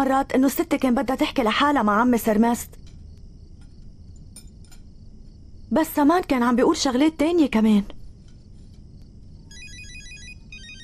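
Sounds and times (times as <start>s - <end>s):
speech: 0.0s - 2.8s, 5.7s - 8.0s
phone ringtone melody for an incoming call: 9.5s - 10.8s.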